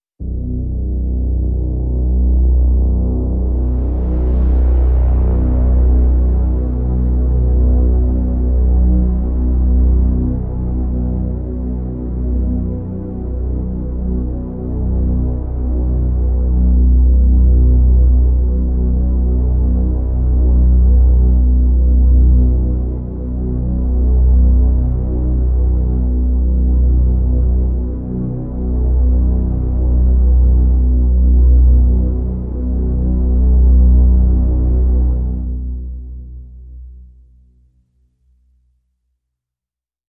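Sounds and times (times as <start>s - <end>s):
low drone: 0.2s - 37.8s.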